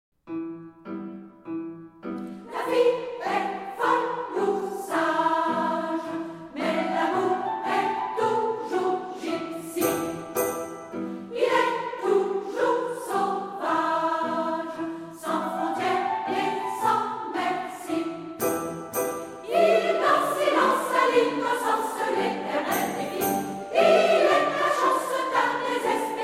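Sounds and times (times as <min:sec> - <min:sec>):
choir singing: 0:02.4 - 0:26.2.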